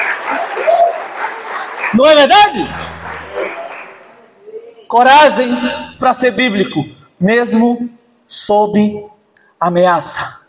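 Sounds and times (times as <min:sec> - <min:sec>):
audience applause: 0:00.0 - 0:04.0
speech: 0:01.9 - 0:03.0, 0:04.9 - 0:10.4.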